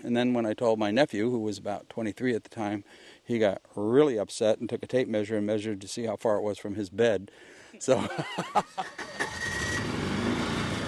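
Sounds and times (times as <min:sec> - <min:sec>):
speech: 0:00.0 - 0:09.2
laughter: 0:07.9 - 0:09.0
all-terrain vehicle engine on an island tour: 0:08.8 - 0:10.8.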